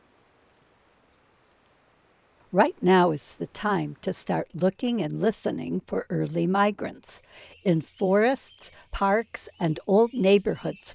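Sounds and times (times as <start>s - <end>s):
brown creeper song: 0.0s - 2.1s, 4.8s - 6.5s, 7.3s - 10.9s
speech: 2.5s - 10.9s.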